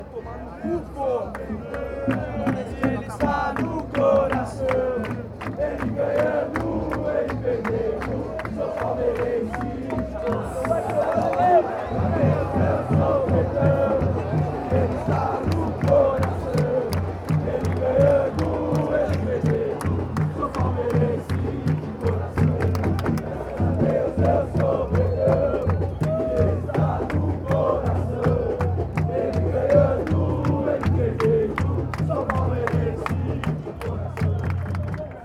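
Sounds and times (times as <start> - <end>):
people chanting: 0.1 - 35.2.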